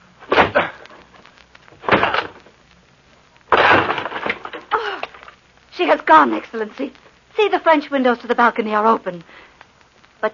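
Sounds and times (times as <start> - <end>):
door being broken down: 0.3 - 0.8, 1.8 - 2.4, 3.5 - 5.2
speech: 5.8 - 9.3.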